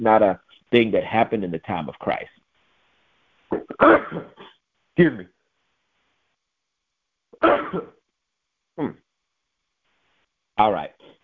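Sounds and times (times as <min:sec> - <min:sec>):
speech: 0:00.0 - 0:02.4, 0:03.6 - 0:05.4, 0:07.4 - 0:08.0, 0:08.8 - 0:09.0, 0:10.6 - 0:11.0
sneeze: 0:03.5 - 0:05.2, 0:07.4 - 0:08.0.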